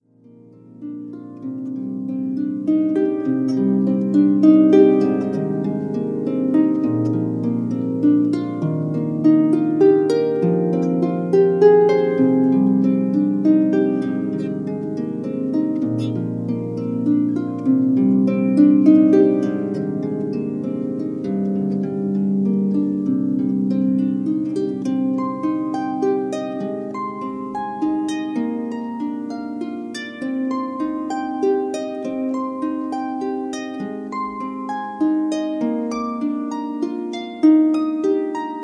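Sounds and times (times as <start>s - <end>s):
harp waltz: 0.0s - 38.6s.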